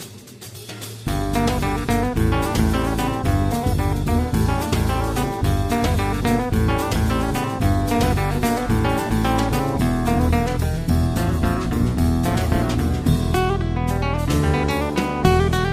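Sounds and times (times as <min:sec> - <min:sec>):
trio playing simple etudes: 0:01.1 - 0:15.7.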